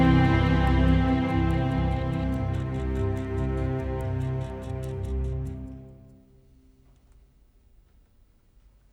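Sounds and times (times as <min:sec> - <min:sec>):
loading music at 72 bpm: 0:00.0 - 0:06.2.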